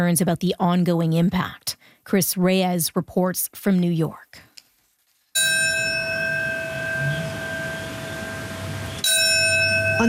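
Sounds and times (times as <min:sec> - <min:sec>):
speech: 0:00.0 - 0:04.5
memorial bells tolling: 0:05.4 - 0:10.0.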